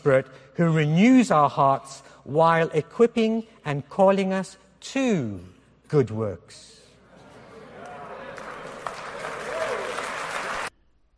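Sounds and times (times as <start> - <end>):
speech: 0.0 - 6.8
audience applause: 7.7 - 10.7.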